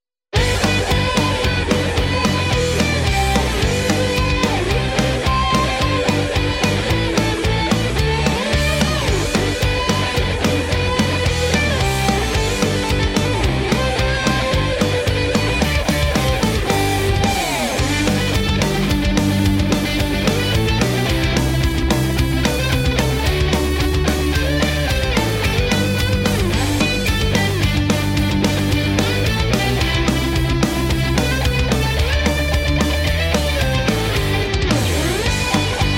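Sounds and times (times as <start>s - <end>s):
Christmas rock song: 0.3s - 35.9s.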